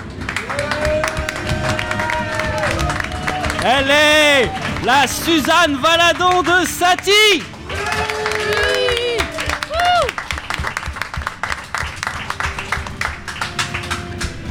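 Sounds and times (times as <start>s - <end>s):
audience applause: 0.0s - 14.4s
speech: 3.6s - 7.5s.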